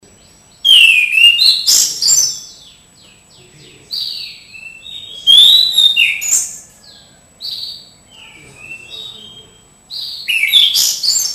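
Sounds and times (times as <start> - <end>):
orange-sided thrush whistled song: 0.6 - 2.6, 4.2 - 6.6, 8.1 - 11.3.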